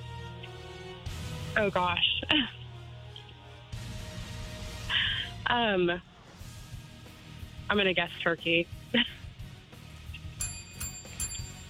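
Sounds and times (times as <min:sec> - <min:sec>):
speech: 0:01.6 - 0:02.6, 0:05.5 - 0:06.1, 0:07.7 - 0:09.2
small bell rung weakly: 0:10.4 - 0:11.6.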